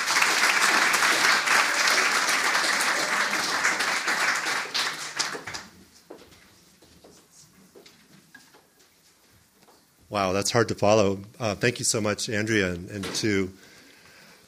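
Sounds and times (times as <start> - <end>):
audience applause welcoming a translator and poet at the Lighthouse: 0.0 - 6.0
speech: 10.1 - 13.7.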